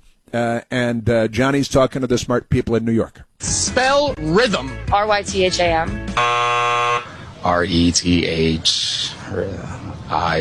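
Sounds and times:
speech: 0.3s - 6.6s, 7.4s - 10.3s
game show buzzer: 6.1s - 7.2s.

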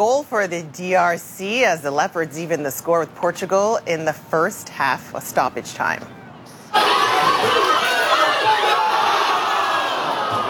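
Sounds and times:
speech: 0.0s - 6.2s
fans cheering World Cup goal at Portuguese community center in Gatineau: 6.7s - 10.4s.

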